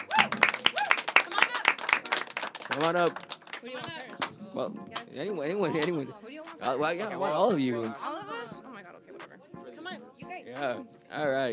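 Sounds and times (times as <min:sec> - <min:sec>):
audience applause: 0:00.0 - 0:04.3
speech: 0:02.7 - 0:08.1, 0:10.6 - 0:11.5.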